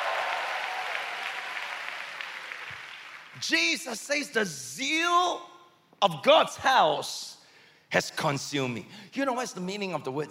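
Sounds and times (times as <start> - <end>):
audience clapping: 0.0 - 3.4
speech: 3.4 - 10.3.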